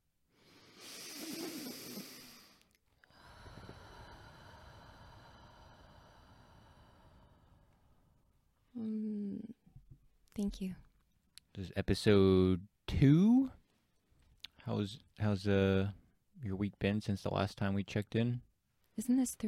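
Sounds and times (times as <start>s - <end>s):
group of people taking a slow breath together: 0.3s - 8.1s
speech: 10.4s - 10.8s, 11.6s - 13.6s, 14.7s - 19.4s.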